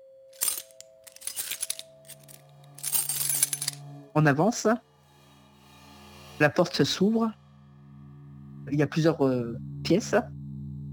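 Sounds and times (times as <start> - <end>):
keys jangling: 0.4 - 3.8
steady low hum: 0.4 - 10.9
speech: 4.2 - 4.9, 6.4 - 7.4, 8.7 - 10.4.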